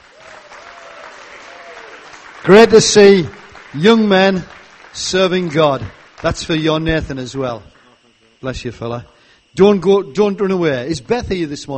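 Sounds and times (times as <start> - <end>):
audience applause: 0.0 - 6.8
speech: 2.4 - 7.8, 8.4 - 11.7.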